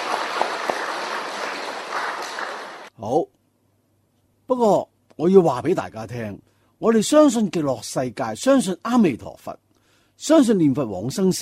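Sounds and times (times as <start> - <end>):
audience applause: 0.0 - 2.9
speech: 3.0 - 3.4, 4.5 - 9.6, 10.2 - 11.4.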